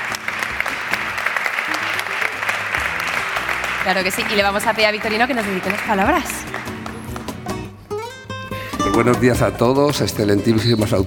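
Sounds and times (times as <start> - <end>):
applause: 0.0 - 7.7
speech: 3.8 - 6.8, 9.0 - 11.0.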